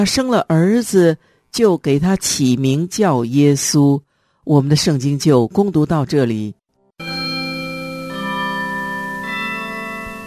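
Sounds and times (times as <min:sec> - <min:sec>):
speech: 0:00.0 - 0:06.6
Christmas bells ringing: 0:07.0 - 0:10.2.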